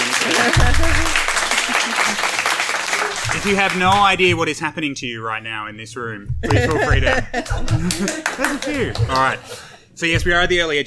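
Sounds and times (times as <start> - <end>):
laughter: 0.0 - 4.0, 6.4 - 9.7
voices cheering: 0.0 - 4.2
live audience applause: 0.0 - 4.3, 7.4 - 9.4
speech: 0.2 - 2.4, 3.2 - 10.8.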